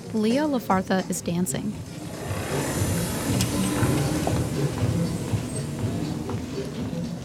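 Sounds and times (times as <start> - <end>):
speech: 0.1 - 1.9
power wheelchair whirring across wood floor: 1.7 - 7.2.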